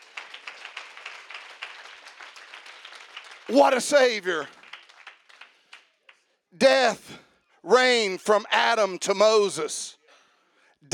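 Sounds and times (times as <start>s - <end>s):
audience clapping: 0.0s - 6.8s
speech: 3.5s - 4.6s, 6.6s - 10.0s.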